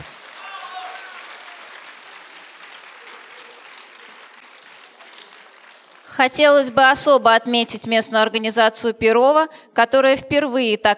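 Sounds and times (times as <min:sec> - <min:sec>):
audience applause: 0:00.0 - 0:06.3
speech: 0:06.2 - 0:10.9.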